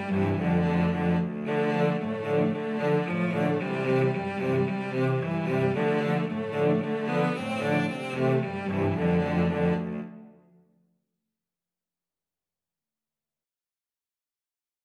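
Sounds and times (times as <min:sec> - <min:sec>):
cello quartet: 0:00.0 - 0:10.4.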